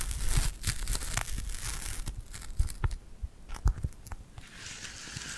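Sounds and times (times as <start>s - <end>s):
glued hands sticky skin peeling and tapping: 0.0s - 4.2s.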